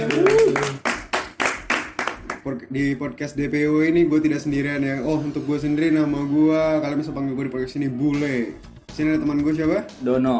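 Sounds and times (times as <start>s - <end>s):
hand clapping: 0.0s - 2.5s
speech: 2.5s - 10.3s.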